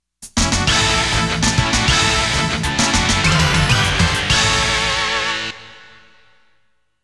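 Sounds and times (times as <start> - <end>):
stage clear jingle: 0.7 - 6.0.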